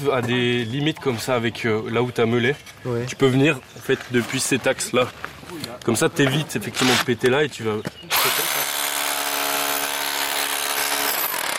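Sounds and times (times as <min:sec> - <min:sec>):
speech: 0:00.0 - 0:08.4
hammer drill running: 0:08.1 - 0:11.5.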